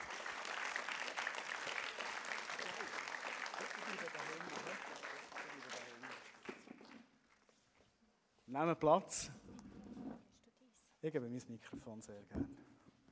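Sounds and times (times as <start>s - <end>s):
audience clapping: 0.0s - 7.5s
speech: 8.5s - 9.4s, 11.0s - 12.6s.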